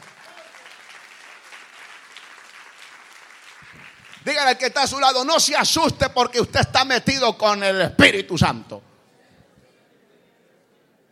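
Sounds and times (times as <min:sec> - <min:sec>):
audience clapping: 0:00.0 - 0:05.2
speech: 0:03.7 - 0:08.9.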